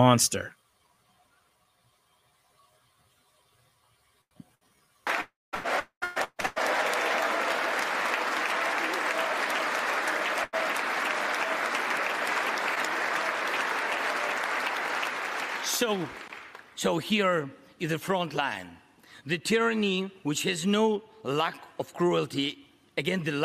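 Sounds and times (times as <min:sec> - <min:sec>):
speech: 0:00.0 - 0:00.6, 0:15.8 - 0:16.2, 0:16.8 - 0:23.4
Congress members applauding: 0:05.1 - 0:16.8.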